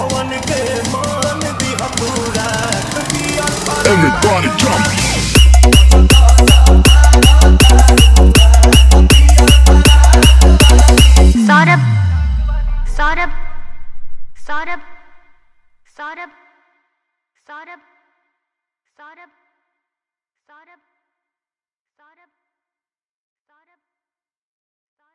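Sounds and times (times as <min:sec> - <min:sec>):
devotional remix music: 0:00.0 - 0:15.3.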